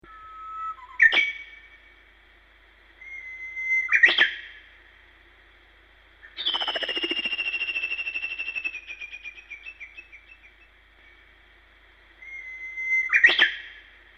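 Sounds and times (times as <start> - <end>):
bird: 0.1 - 2.0, 3.0 - 4.7, 6.2 - 11.3, 12.2 - 14.1.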